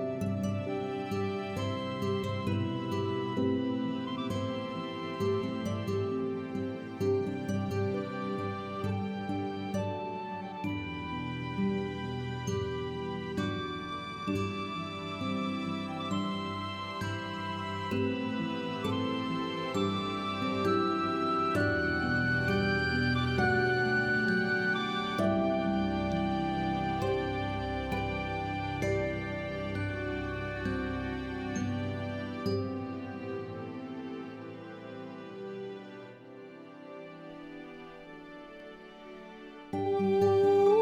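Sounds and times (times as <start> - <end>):
soprano singing: 0.0 - 33.6, 39.8 - 40.7.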